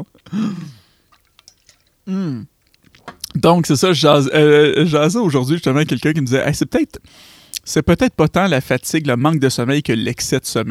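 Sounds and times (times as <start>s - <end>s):
speech: 0.0s - 0.8s, 2.1s - 2.5s, 3.4s - 10.6s
slurping sip of coffee: 0.0s - 3.3s
swallowing: 0.0s - 3.4s, 6.8s - 9.0s.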